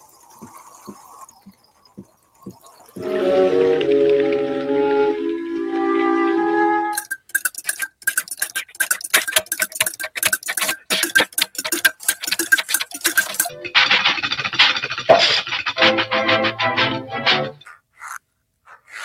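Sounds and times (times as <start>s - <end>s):
rain effect from slowly rotating tube of nails and peas: 2.5s - 17.6s.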